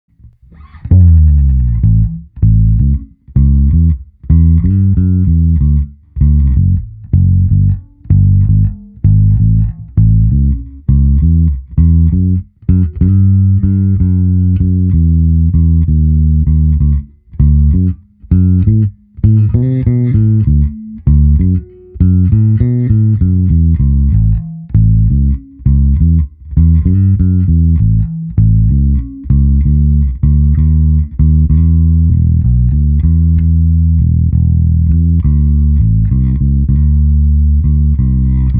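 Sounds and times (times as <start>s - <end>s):
blues music: 0.1s - 38.5s.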